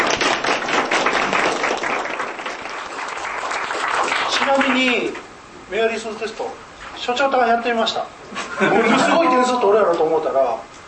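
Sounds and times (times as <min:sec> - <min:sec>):
audience applause: 0:00.0 - 0:05.0
speech: 0:04.5 - 0:10.7
laughter: 0:08.4 - 0:09.7.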